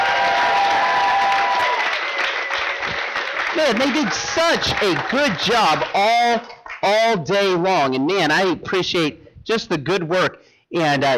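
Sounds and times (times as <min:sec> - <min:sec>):
audience applause: 0:00.0 - 0:07.0
speech: 0:03.6 - 0:11.1.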